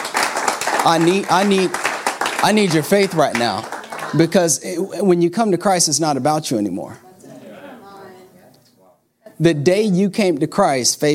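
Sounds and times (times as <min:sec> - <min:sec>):
crowd clapping: 0:00.0 - 0:04.6
speech: 0:00.8 - 0:01.8, 0:02.4 - 0:07.0, 0:09.4 - 0:11.1.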